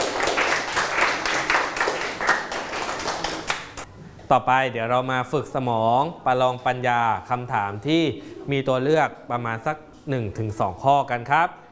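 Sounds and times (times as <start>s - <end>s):
audience applause: 0.0s - 3.8s
speech: 4.3s - 11.6s.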